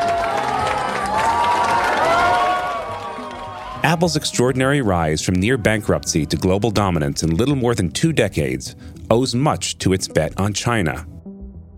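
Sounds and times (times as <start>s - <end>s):
crowd cheering excitedly at the opening of an Apple store in Beijing: 0.0s - 6.4s
speech: 3.8s - 11.1s.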